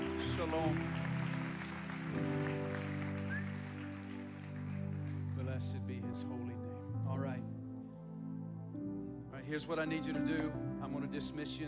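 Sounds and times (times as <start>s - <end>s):
crowd applause: 0.0s - 5.6s
sustained keyboard chords droning: 0.0s - 11.6s
speech: 0.4s - 1.0s, 5.6s - 7.5s, 9.5s - 11.6s.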